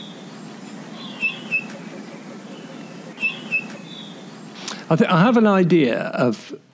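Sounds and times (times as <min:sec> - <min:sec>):
bullfinch song: 0:00.0 - 0:04.8
low hiss: 0:00.0 - 0:06.7
speech: 0:04.9 - 0:06.7.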